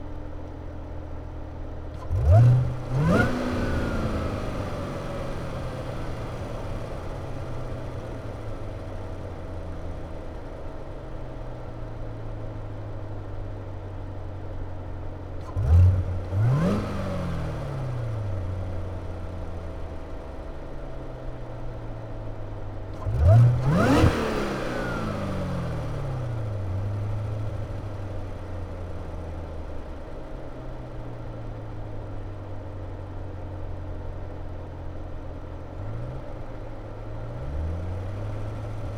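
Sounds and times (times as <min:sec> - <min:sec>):
2016 Corvette C7 Z06 engine starting, idling, blipping and shutting off in neutral: 0:02.0 - 0:11.2, 0:15.4 - 0:21.5, 0:22.9 - 0:29.9, 0:35.8 - 0:38.9.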